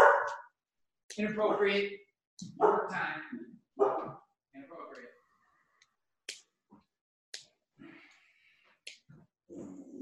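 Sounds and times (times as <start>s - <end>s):
pet dog barking: 0.0s - 0.5s, 2.5s - 3.0s, 3.8s - 4.2s.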